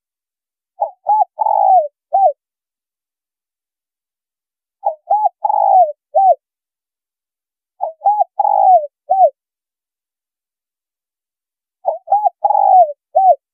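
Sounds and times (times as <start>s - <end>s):
spotted dove cooing: 0.8s - 2.4s, 4.8s - 6.4s, 7.8s - 9.4s, 11.8s - 13.4s.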